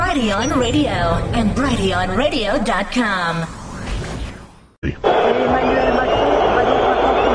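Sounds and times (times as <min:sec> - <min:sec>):
speech: 0:00.2 - 0:03.6, 0:04.8 - 0:06.0
crowd booing: 0:05.0 - 0:07.3.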